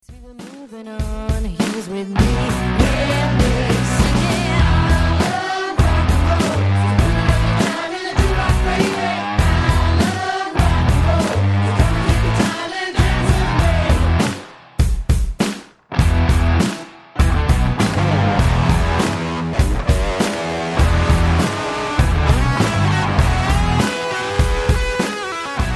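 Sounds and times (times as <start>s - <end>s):
bassline: 2.2s - 25.7s.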